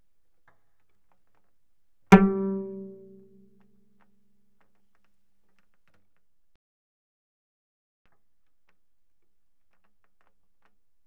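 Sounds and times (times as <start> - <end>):
cello pizzicato fortissimo on the G string: 2.1 - 3.9.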